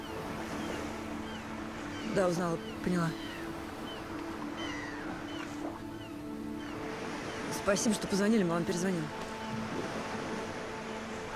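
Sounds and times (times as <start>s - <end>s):
seagulls calling: 0.0s - 11.1s
speech: 2.1s - 3.3s, 7.6s - 9.7s.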